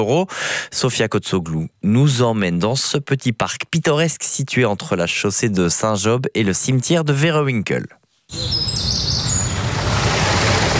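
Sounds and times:
speech: 0.0 - 9.2
birdsong: 8.3 - 10.0.

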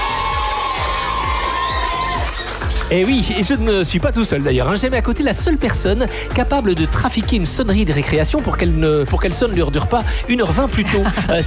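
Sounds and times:
crowd of schoolchildren cheering and shouting: 0.0 - 2.8
rhythmic low thumps: 0.0 - 11.4
speech: 2.9 - 11.4.

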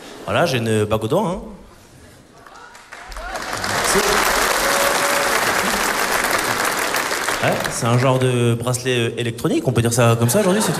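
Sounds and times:
speech: 0.2 - 1.6, 7.4 - 10.7
audience applause: 2.4 - 8.2
laughter: 10.2 - 10.7.

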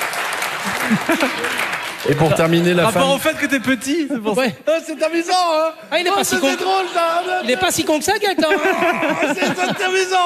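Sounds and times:
audience applause: 0.0 - 3.8
laughter: 0.6 - 10.2
speech: 0.6 - 10.2.

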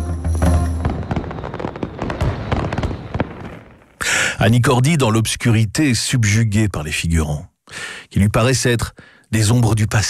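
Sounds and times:
fireworks exploding: 0.0 - 4.0
speech: 4.4 - 10.0.

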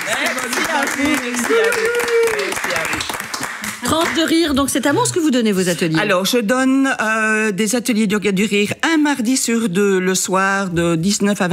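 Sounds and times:
group clapping: 0.0 - 5.0
speech: 0.1 - 2.9, 3.9 - 11.5.

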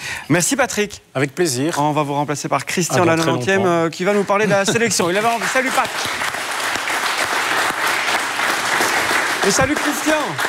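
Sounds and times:
speech: 0.3 - 6.4, 9.5 - 10.4
crowd applause: 4.7 - 10.4.

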